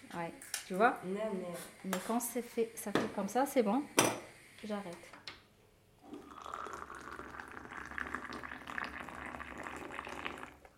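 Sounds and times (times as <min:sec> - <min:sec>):
speech: 0:00.2 - 0:05.2
water boiling for tea: 0:06.0 - 0:10.7.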